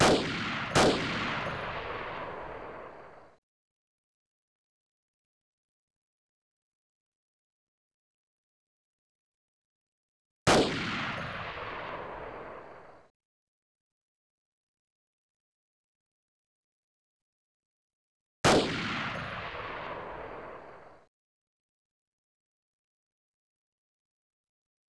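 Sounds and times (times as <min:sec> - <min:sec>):
sniper rifle shot: 0:00.0 - 0:03.4, 0:10.5 - 0:13.1, 0:18.4 - 0:21.1.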